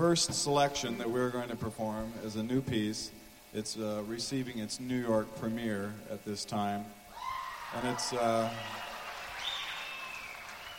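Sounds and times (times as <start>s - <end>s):
speech: 0.0s - 7.0s, 7.7s - 8.9s
audience clapping: 7.8s - 10.7s.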